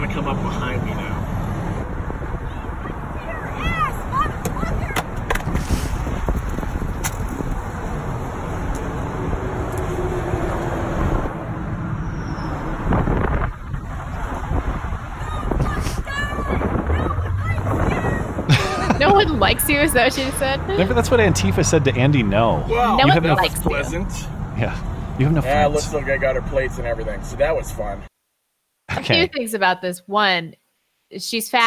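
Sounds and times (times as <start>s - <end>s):
car road rumble in Massachusetts: 0.0s - 28.1s
speech: 0.2s - 0.8s, 19.4s - 28.1s, 29.1s - 31.6s
wind buffeting a driving car: 1.1s - 22.8s
laughter: 18.5s - 21.3s, 23.0s - 23.8s, 28.9s - 29.3s.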